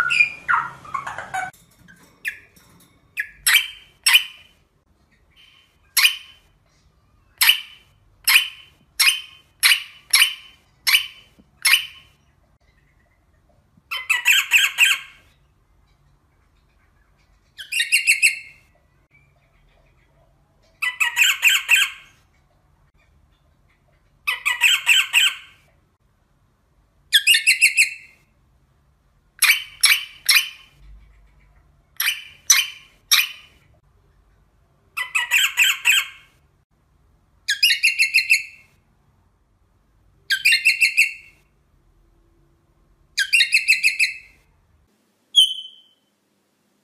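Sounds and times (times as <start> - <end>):
rosella making harsh rasping squawks: 0.0 - 1.6, 3.2 - 4.6, 5.4 - 6.5, 7.3 - 12.1, 13.9 - 15.2, 17.6 - 18.6, 20.8 - 22.2, 24.2 - 25.7, 29.4 - 30.8, 32.0 - 33.6, 35.0 - 36.4, 37.5 - 38.7, 40.3 - 41.4, 43.2 - 44.4, 45.3 - 46.0.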